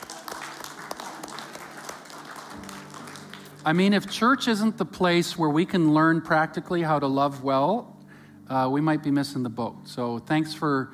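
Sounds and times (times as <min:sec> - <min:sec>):
audience applause: 0:00.0 - 0:04.1
speech: 0:03.6 - 0:07.9, 0:08.5 - 0:10.9.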